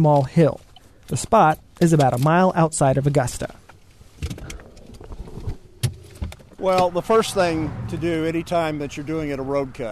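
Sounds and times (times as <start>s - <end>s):
speech: 0.0s - 3.6s, 6.6s - 9.9s
highway traffic passing a road cut on US 400 near Augusta, Kansas: 4.6s - 9.9s
cars passing on US 400: 5.8s - 9.9s.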